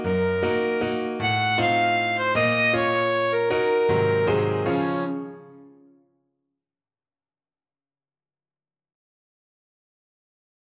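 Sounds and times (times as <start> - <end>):
alto saxophone playing a waltz: 0.0 - 5.7.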